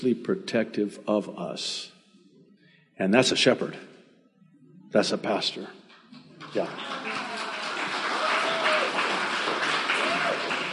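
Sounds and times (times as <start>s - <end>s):
speech: 0.0s - 1.9s, 3.0s - 3.9s, 4.9s - 5.8s, 6.4s - 7.2s
audience clapping: 5.9s - 10.7s.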